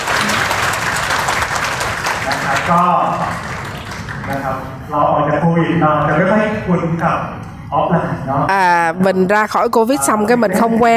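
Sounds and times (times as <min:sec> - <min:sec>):
audience applause: 0:00.0 - 0:04.5
speech: 0:02.7 - 0:03.5, 0:04.3 - 0:10.9.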